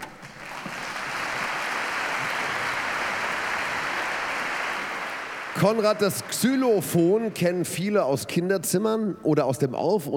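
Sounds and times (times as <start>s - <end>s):
audience applause: 0.0s - 7.2s
speech: 5.6s - 10.1s.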